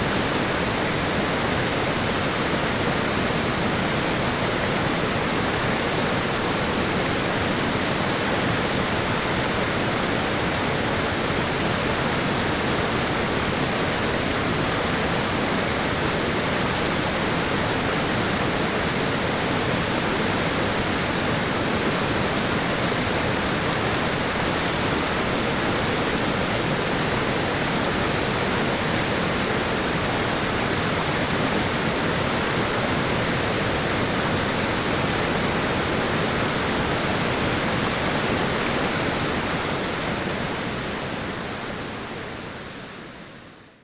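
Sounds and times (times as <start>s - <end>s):
river flowing: 0.0s - 43.8s.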